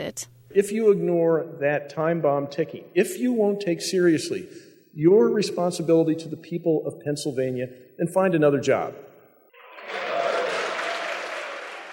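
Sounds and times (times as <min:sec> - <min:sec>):
speech: 0:00.0 - 0:09.1
crowd clapping: 0:09.6 - 0:11.9.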